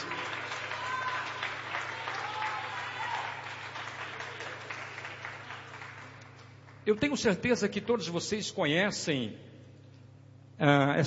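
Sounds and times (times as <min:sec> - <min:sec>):
audience applause: 0:00.0 - 0:06.8
low constant hum: 0:00.0 - 0:11.0
speech: 0:06.9 - 0:09.5, 0:10.6 - 0:11.0.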